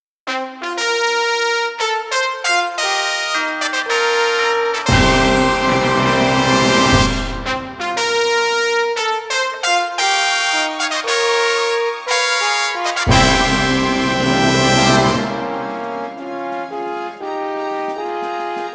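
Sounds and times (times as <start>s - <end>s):
fanfare: 0.3s - 18.1s.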